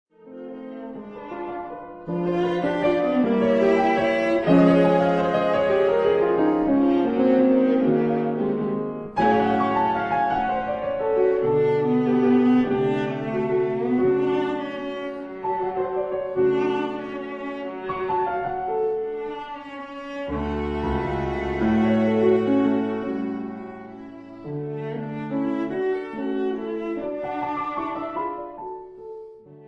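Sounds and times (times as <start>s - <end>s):
piano: 0.1s - 29.6s
viola: 0.1s - 29.6s.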